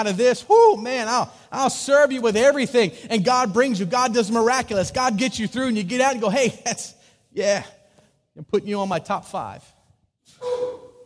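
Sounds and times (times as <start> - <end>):
speech: 0.0 - 7.8, 8.4 - 9.7
loud sneeze: 10.3 - 11.0.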